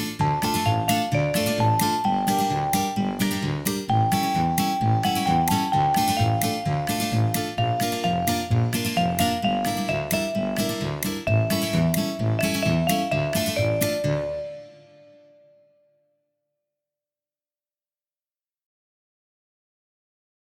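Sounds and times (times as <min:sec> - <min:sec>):
backing track: 0:00.2 - 0:15.3.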